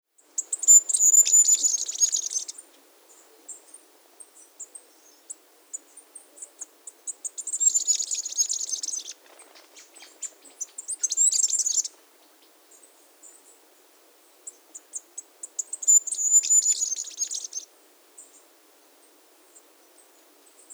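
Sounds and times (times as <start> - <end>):
Masked flowerpiercer Diglossa cyanea song in Iguaque, Villa de Leyva, Colombia: 0.4 - 2.6, 7.3 - 12.0, 15.6 - 17.7.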